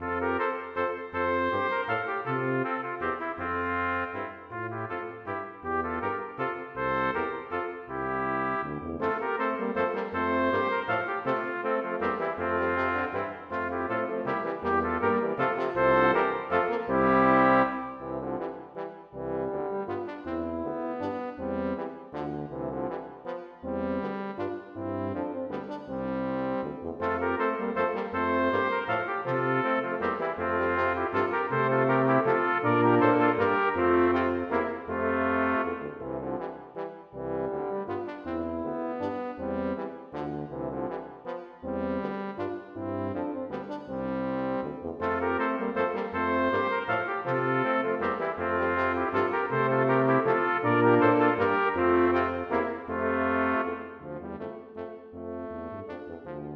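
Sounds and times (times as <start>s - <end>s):
brass quintet playing a minuet: 0.0s - 56.5s.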